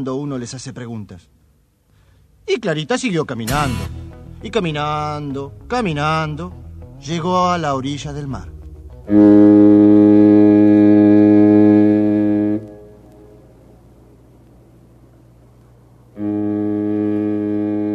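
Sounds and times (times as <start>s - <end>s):
speech: 0.0s - 1.4s, 2.5s - 8.5s, 9.1s - 9.4s
ship's horn sounding: 9.0s - 13.4s, 16.1s - 17.9s.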